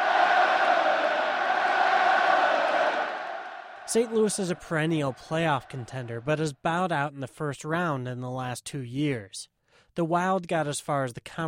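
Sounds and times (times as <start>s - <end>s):
sellout hockey crowd jeering the goalie: 0.0s - 6.5s
speech: 3.9s - 11.4s.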